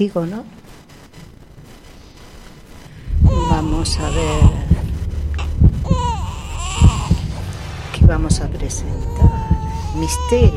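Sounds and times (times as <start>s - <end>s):
speech: 0.0s - 0.6s, 3.6s - 4.7s, 8.1s - 10.5s
baby crying: 3.3s - 4.6s, 5.4s - 7.2s, 8.9s - 10.5s.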